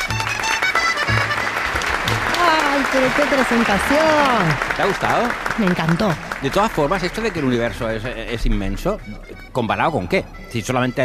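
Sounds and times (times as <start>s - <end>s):
audience applause: 0.0s - 8.6s
speech: 2.8s - 11.0s.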